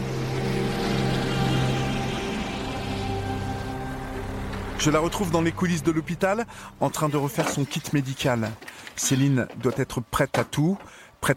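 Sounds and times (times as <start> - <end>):
helicopter noise: 0.0 - 7.0
speech: 4.8 - 11.3.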